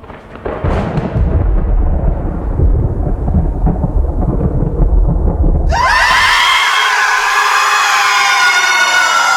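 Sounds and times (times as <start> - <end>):
thunderclap of a lightning strike: 0.0 - 9.2.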